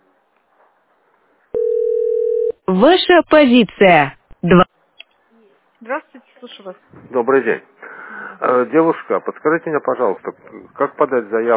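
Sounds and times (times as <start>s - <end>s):
short telephone busy tones: 1.6s - 2.6s
speech: 2.7s - 4.7s, 5.9s - 7.8s, 8.4s - 11.5s.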